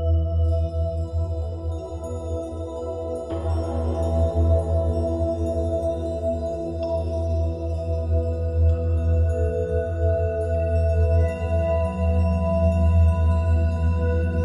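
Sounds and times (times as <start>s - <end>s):
Tibetan singing bowls for meditation: 0.1s - 14.4s.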